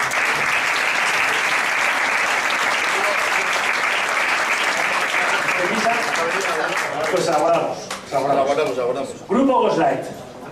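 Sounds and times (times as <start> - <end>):
audience applause: 0.0 - 7.7
speech: 7.1 - 10.2.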